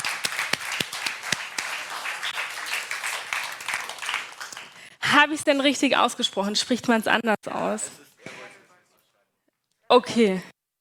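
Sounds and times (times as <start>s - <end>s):
audience applauding: 0.0s - 4.9s
speech: 5.2s - 8.0s, 9.9s - 10.5s.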